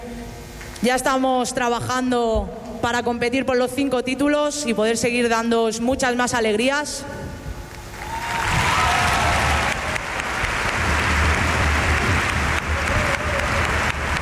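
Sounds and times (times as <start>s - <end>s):
speech: 0.8s - 7.3s
audience applause: 8.0s - 14.2s.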